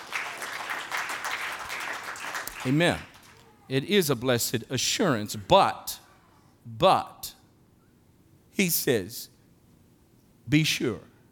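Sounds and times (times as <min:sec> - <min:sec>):
audience clapping hands: 0:00.0 - 0:03.5
speech: 0:02.6 - 0:03.1, 0:03.7 - 0:06.0, 0:06.6 - 0:07.4, 0:08.6 - 0:09.3, 0:10.5 - 0:11.1.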